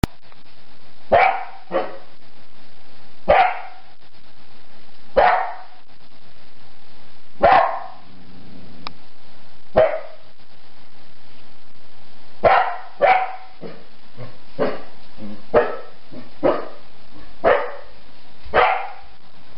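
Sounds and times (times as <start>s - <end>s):
animal barking: 1.1s - 2.1s, 3.3s - 3.9s, 5.2s - 5.8s, 7.4s - 8.1s, 9.8s - 10.2s, 12.4s - 19.2s.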